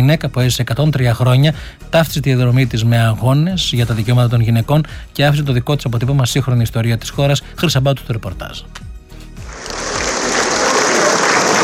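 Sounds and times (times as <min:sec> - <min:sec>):
speech: 0:00.0 - 0:08.9
large crowd applauding at a funeral: 0:09.4 - 0:11.6.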